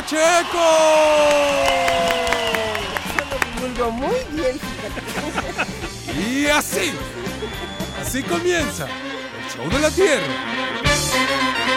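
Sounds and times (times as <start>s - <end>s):
applause and cheering: 0.0s - 5.3s
speech: 0.1s - 1.8s, 3.8s - 11.7s
laughter: 1.8s - 10.0s.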